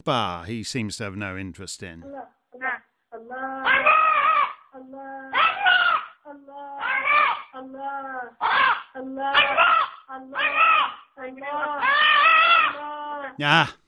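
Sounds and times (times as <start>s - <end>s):
speech: 0.0s - 2.4s, 13.4s - 13.8s
chicken squawking: 3.7s - 4.7s, 5.4s - 6.2s, 6.8s - 7.5s, 8.4s - 11.1s, 11.8s - 12.8s.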